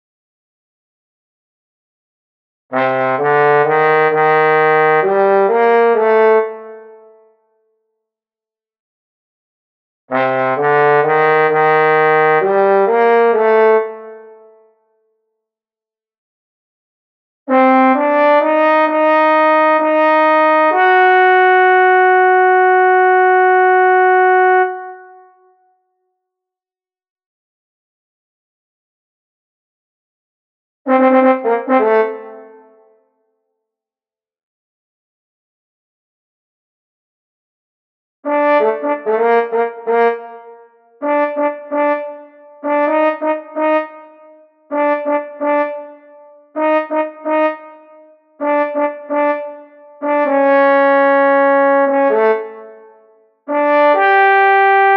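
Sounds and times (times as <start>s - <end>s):
trombone: 2.7s - 6.9s, 10.1s - 14.3s, 17.5s - 25.2s, 30.9s - 32.8s, 38.3s - 52.9s, 53.5s - 54.9s.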